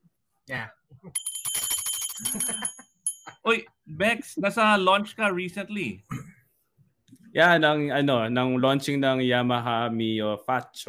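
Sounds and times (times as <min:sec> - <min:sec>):
speech: 0:00.5 - 0:01.3, 0:02.2 - 0:02.8, 0:03.4 - 0:06.2, 0:07.4 - 0:10.8
bell ringing: 0:01.1 - 0:03.5.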